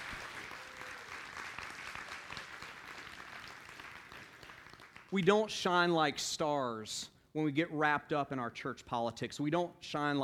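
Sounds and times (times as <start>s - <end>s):
audience applause: 0.0s - 5.1s
speech: 5.1s - 10.2s.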